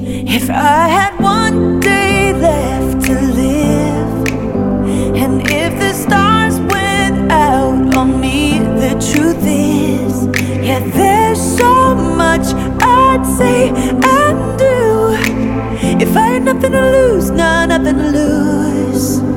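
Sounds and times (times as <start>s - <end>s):
song: 0.2s - 19.3s.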